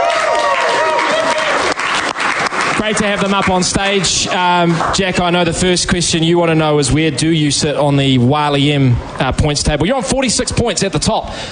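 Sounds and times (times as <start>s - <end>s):
round of applause in a sports bar: 0.0s - 5.3s
speech: 2.8s - 11.4s.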